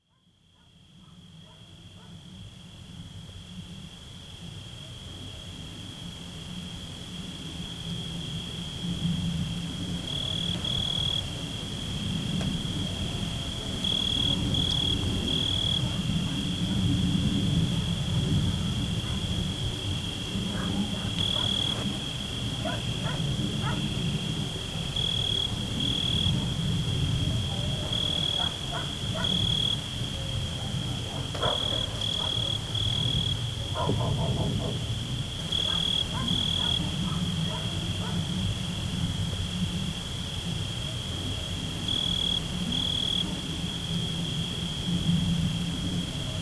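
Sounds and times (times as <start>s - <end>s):
crickets chirping: 0.5s - 46.4s.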